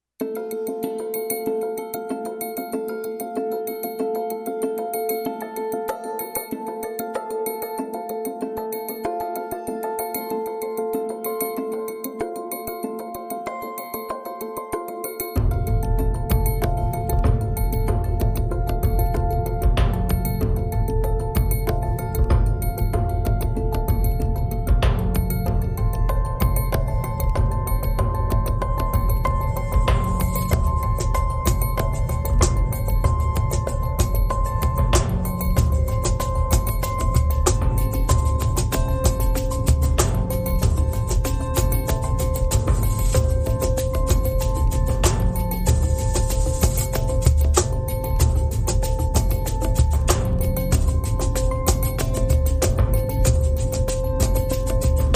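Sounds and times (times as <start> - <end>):
percussion: 0.0 - 55.1.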